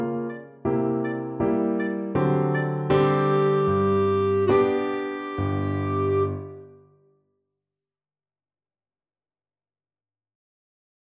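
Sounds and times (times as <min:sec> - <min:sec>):
clarinet playing a Romanian folk dance: 0:00.0 - 0:06.8.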